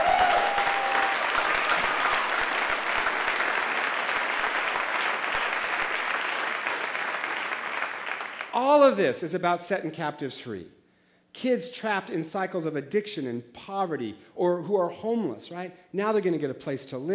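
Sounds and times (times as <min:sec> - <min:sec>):
crowd applause: 0:00.0 - 0:08.6
speech: 0:08.7 - 0:10.8, 0:11.4 - 0:17.1.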